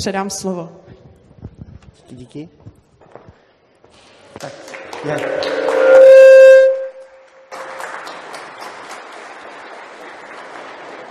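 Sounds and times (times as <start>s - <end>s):
speech: 0.0s - 0.8s, 2.1s - 2.7s, 4.0s - 5.7s
audience applause: 4.4s - 11.0s
loud sustained humming tone: 4.9s - 7.2s.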